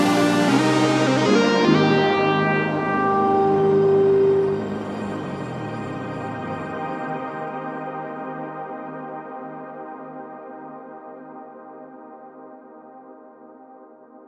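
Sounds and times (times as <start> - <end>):
future bass music: 0.0 - 7.7.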